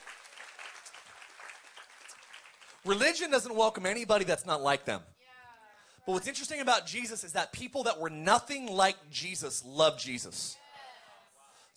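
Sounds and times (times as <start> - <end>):
audience applause: 0.0 - 2.9
speech: 2.8 - 5.1, 6.1 - 10.6.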